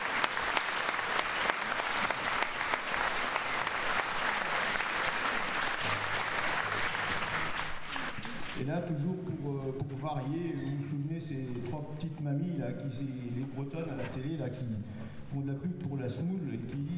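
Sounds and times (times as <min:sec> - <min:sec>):
audience applause: 0:00.0 - 0:08.6
speech: 0:08.7 - 0:16.9.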